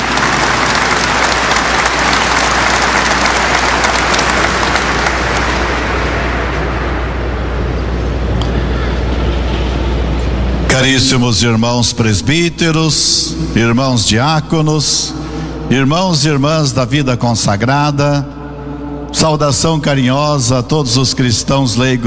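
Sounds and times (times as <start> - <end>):
audience applause: 0.0 - 6.7
low constant hum: 0.0 - 22.0
speech: 10.8 - 18.4, 19.1 - 22.0.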